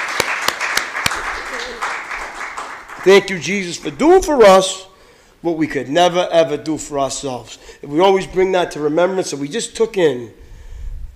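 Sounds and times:
audience applause: 0.0 - 3.5
speech: 3.0 - 10.4.

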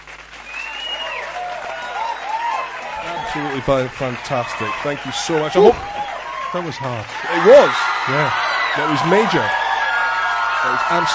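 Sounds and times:
audience applause: 0.0 - 11.1
speech: 3.3 - 9.6, 10.6 - 11.1.

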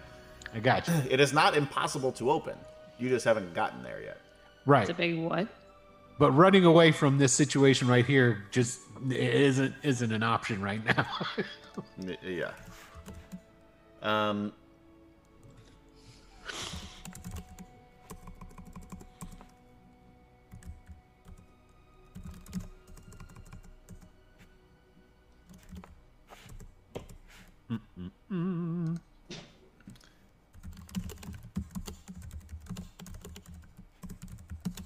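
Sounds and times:
speech: 0.5 - 5.6, 6.2 - 13.2, 14.0 - 14.6
laughter: 10.8 - 12.0
keyboard typing a letter: 11.6 - 13.4, 16.7 - 19.6, 20.5 - 21.5, 22.2 - 24.1, 25.5 - 27.2, 29.8 - 34.8.

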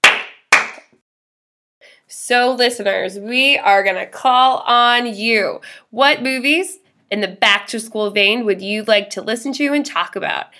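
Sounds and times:
hand claps: 0.0 - 1.0
speech: 2.1 - 10.5.

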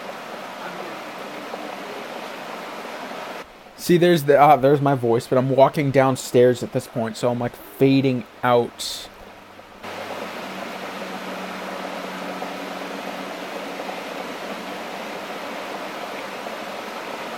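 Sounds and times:
rain: 0.0 - 17.3
speech: 3.8 - 9.1.

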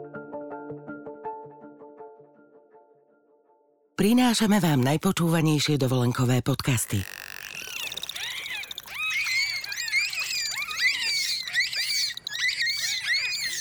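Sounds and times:
speech: 4.0 - 7.2
bottlenose dolphins chattering: 6.7 - 13.5.

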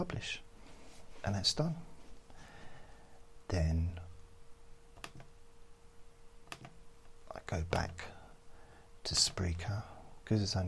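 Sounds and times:
speech: 0.0 - 0.4, 1.2 - 1.9, 3.5 - 4.0, 7.5 - 8.2, 9.0 - 10.6
computer mouse clicks while publishing a podcast episode: 5.0 - 5.3, 6.4 - 6.8.

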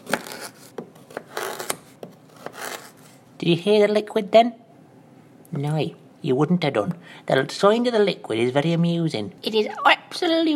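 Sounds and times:
knife slicing a firm long vegetable: 0.0 - 3.1
speech: 3.4 - 4.6, 5.5 - 10.5.

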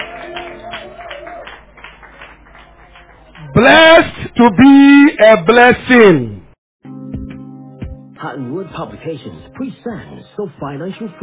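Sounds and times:
audience clapping: 0.0 - 4.2
speech: 3.6 - 6.4, 8.2 - 11.2.

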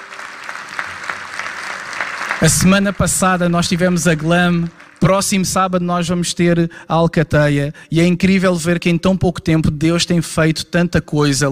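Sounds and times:
audience applauding: 0.0 - 5.5
speech: 2.4 - 11.4.

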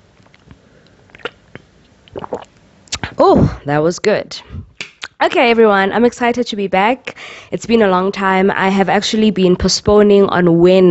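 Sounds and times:
sipping and swallowing water: 1.1 - 3.2
wet mouth clicks: 1.1 - 3.2, 4.8 - 5.2
speech: 3.2 - 4.6, 5.2 - 10.8.

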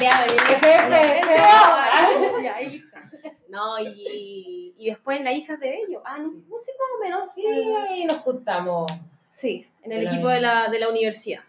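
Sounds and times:
applause: 0.0 - 1.8
people talking loudly: 0.0 - 9.0, 10.0 - 11.0
laughter: 0.6 - 4.3
speech: 3.6 - 11.4.

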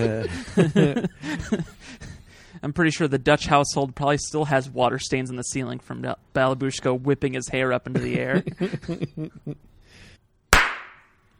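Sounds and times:
speech: 0.0 - 2.0, 2.6 - 9.7
laughter: 0.0 - 2.2, 7.9 - 9.6
single hand clap: 10.6 - 11.1.

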